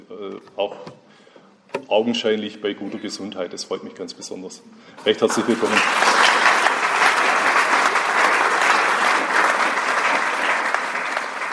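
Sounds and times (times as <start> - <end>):
speech: 0.1 - 1.2, 1.9 - 6.2
sustained audience applause: 5.2 - 11.5.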